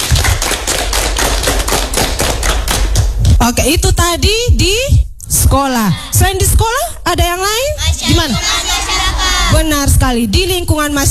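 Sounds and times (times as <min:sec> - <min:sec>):
class clapping hands: 0:00.0 - 0:03.4
speech: 0:03.6 - 0:08.7, 0:09.5 - 0:11.0.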